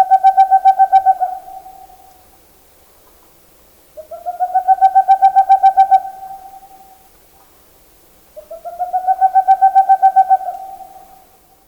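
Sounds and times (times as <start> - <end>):
Boreal Owl song: 0.0 - 2.2, 4.0 - 7.1, 8.4 - 11.5.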